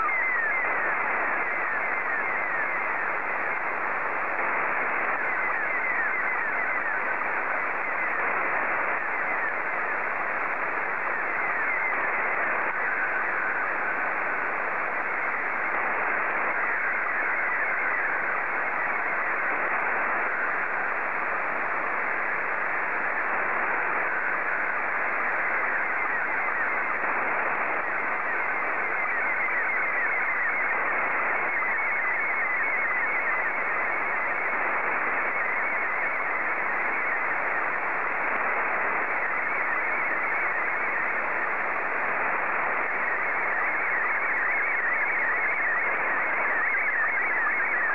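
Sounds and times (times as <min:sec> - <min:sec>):
SSTV Scottie 2 signal: 0:00.0 - 0:47.9.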